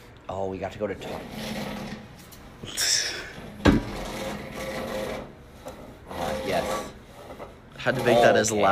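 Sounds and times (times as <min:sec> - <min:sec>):
speech: 0:00.3 - 0:02.0, 0:07.8 - 0:08.6
chair scraping on floor: 0:01.0 - 0:02.4, 0:03.4 - 0:08.6.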